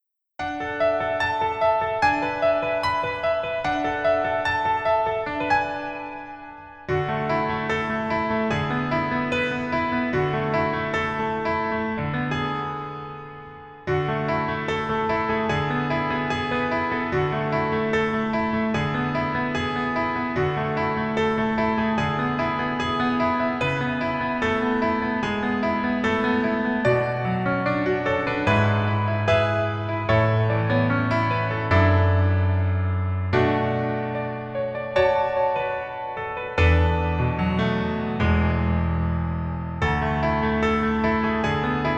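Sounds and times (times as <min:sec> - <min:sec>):
piano melody backing track: 0:00.4 - 0:41.9.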